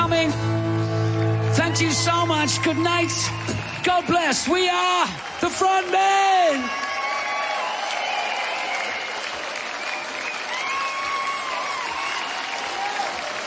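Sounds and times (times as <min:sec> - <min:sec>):
audience applause: 0:00.0 - 0:13.4
speech: 0:01.8 - 0:06.9.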